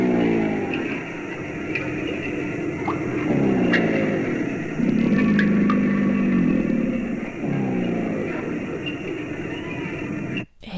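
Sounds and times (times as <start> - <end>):
crocodile growl: 0.0 - 10.4.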